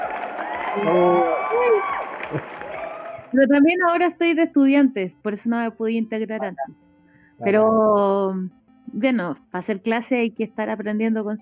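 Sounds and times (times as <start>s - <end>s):
applause: 0.0s - 3.4s
speech: 0.8s - 2.7s, 3.3s - 6.8s, 7.4s - 11.3s.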